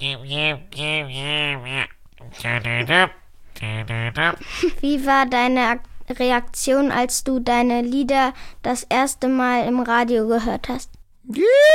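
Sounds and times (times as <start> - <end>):
voice imitating a stuffy-nosed congested way of talking: 0.0 - 4.9
speech: 0.0 - 11.7.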